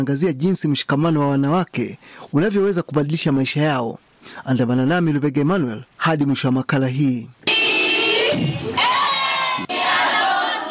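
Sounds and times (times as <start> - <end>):
speech: 0.0 - 7.4, 8.4 - 8.8
women ululating with joy after receiving land titles: 7.5 - 10.7
crowd roar: 7.6 - 10.7.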